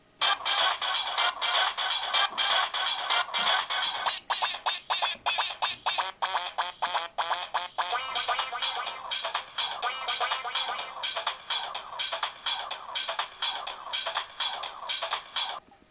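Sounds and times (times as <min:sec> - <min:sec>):
Samsung SGH-E700 ringtone: 0:00.2 - 0:15.6.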